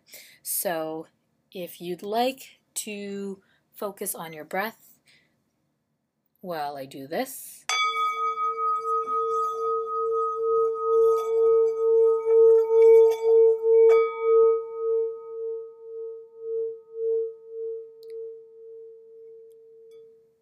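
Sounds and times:
speech: 0.6 - 4.8, 6.4 - 7.6
singing bowl played with a mallet: 7.7 - 20.4.

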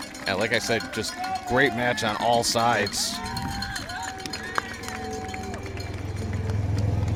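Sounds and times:
speech: 0.3 - 3.4
golf cart driving past: 4.5 - 7.1.

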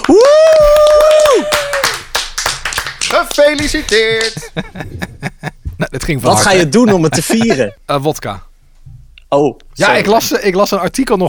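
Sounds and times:
vocal whoop: 0.0 - 2.0
hands clapping to congratulate a winner: 0.0 - 4.6
speech: 3.5 - 5.1, 5.9 - 8.5, 9.3 - 11.2
laughter: 3.6 - 7.8.

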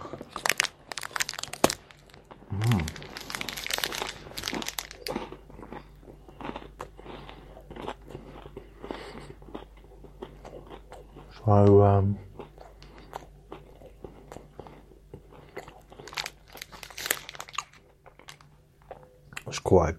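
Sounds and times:
chocolate bar wrapper crinkling: 0.0 - 5.4, 15.9 - 18.5
person eating a crunchy chocolate bar: 0.0 - 11.4, 12.3 - 19.1
speech: 11.4 - 12.3, 19.7 - 19.9.

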